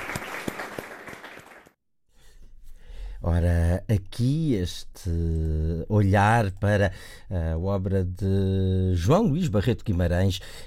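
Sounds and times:
audience applause: 0.0 - 1.8
speech: 3.2 - 10.6.

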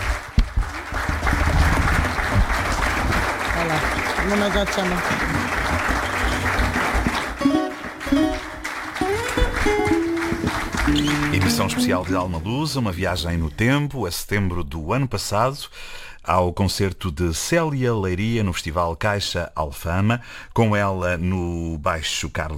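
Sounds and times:
concert audience applause: 0.0 - 12.6
speech: 4.3 - 5.2, 8.1 - 8.4, 10.9 - 22.5.

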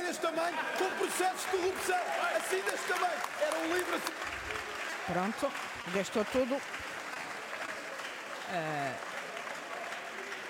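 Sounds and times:
applause from parliament deputies: 0.0 - 10.4
speech: 0.3 - 6.8, 8.5 - 9.1.

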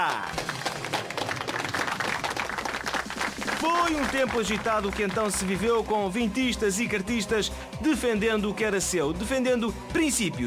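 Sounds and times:
audience applause: 0.0 - 5.9
speech: 3.6 - 10.4.

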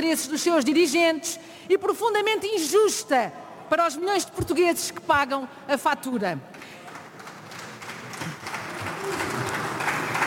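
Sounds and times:
speech: 0.0 - 6.8
sparse applause from deputies: 6.6 - 10.2.

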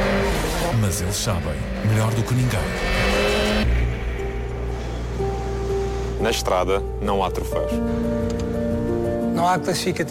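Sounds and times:
rally-style racing car engine revving: 0.0 - 5.5
speech: 0.8 - 3.3, 6.2 - 8.6, 9.4 - 10.0.

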